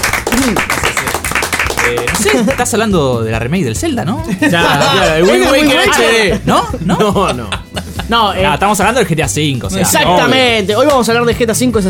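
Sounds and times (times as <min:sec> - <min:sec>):
clapping: 0:00.0 - 0:02.7
speech: 0:00.4 - 0:00.8, 0:01.8 - 0:11.8
laughter: 0:04.3 - 0:08.4.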